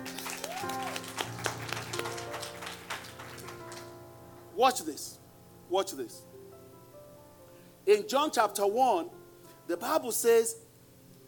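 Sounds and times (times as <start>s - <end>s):
hands clapping: 0.0s - 3.9s
speech: 4.6s - 6.3s, 7.9s - 10.6s.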